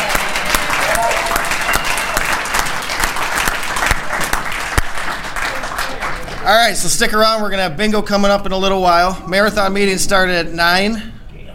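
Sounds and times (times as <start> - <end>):
audience applause: 0.0 - 6.7
speech: 6.5 - 11.1.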